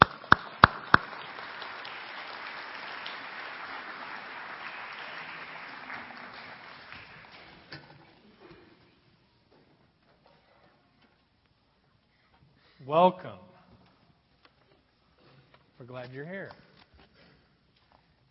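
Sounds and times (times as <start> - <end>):
audience applause welcoming two guests: 0.0 - 7.7
speech: 12.9 - 13.4, 16.0 - 16.6.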